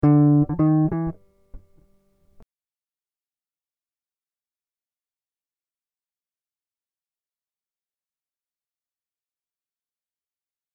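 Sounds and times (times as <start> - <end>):
guitar riffs in E minor at 100 BPM: 0.0 - 1.9.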